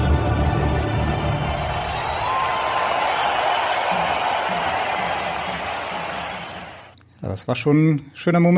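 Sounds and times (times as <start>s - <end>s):
stadium crowd applause after anthem: 0.1s - 6.9s
speech: 7.4s - 8.5s.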